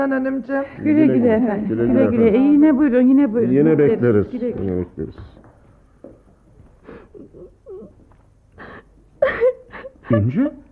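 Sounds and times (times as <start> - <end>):
speech: 0.0 - 5.4, 10.1 - 10.6
girl crying softly in sobs and whimpers: 7.0 - 8.0.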